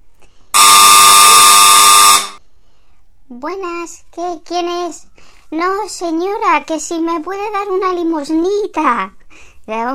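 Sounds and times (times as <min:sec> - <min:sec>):
doorbell ringing: 0:00.6 - 0:02.4
speech: 0:03.4 - 0:09.9.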